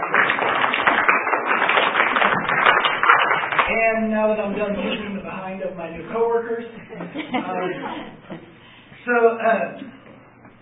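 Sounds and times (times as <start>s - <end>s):
round of applause: 0.0s - 3.7s
speech: 3.8s - 8.4s, 9.0s - 10.0s
laughter: 6.8s - 8.6s.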